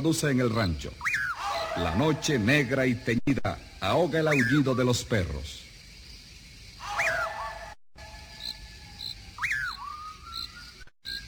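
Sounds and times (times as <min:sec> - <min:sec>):
speech: 0:00.0 - 0:01.1, 0:01.8 - 0:05.6
eerie piercing whistle: 0:01.0 - 0:05.1, 0:06.8 - 0:11.2.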